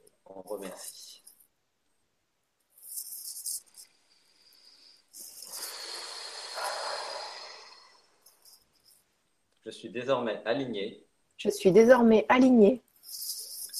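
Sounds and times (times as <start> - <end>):
speech: 0.3 - 1.2, 9.7 - 12.9
exhaled breaths during a guided meditation: 3.8 - 8.6.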